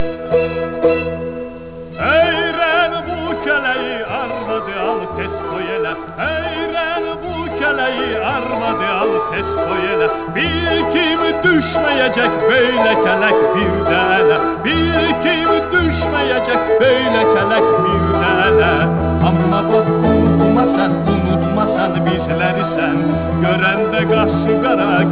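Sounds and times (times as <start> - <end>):
musical trio: 0.0 - 25.1.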